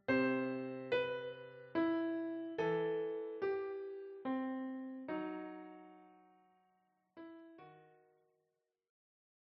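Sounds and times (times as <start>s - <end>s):
piano piece: 0.0s - 6.6s, 7.2s - 8.1s.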